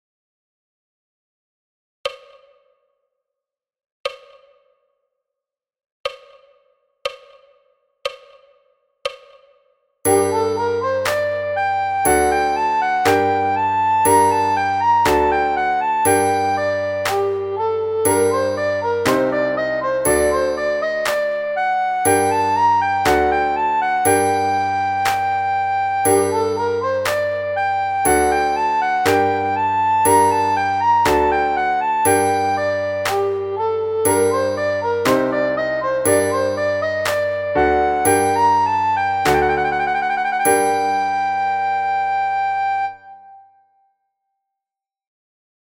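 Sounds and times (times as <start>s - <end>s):
recorder playing at fast alto tempo: 10.1s - 43.0s.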